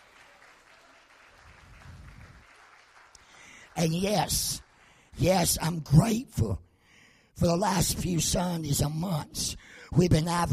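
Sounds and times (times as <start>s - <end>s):
audience hand clapping: 0.0s - 5.0s
speech: 3.8s - 4.6s, 5.2s - 6.6s, 7.4s - 10.5s.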